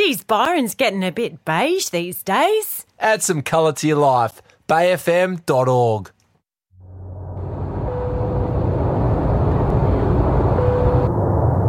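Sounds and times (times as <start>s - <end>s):
speech: 0.1s - 6.2s
airplane engine drone descending into Byron Ballina Gateway Airport: 6.8s - 11.6s.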